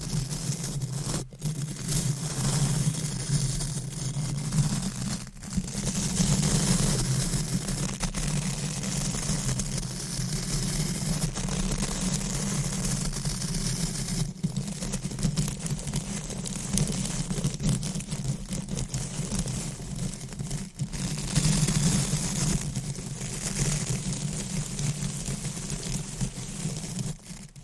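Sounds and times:
deep scratching, brushing and stroking against a microphone: 0.0s - 27.6s.

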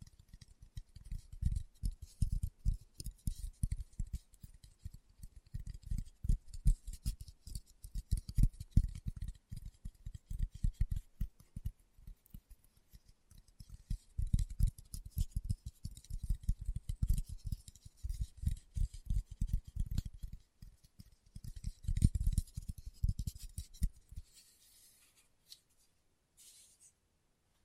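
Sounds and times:
fingertips tapping on a surface: 0.0s - 25.8s.

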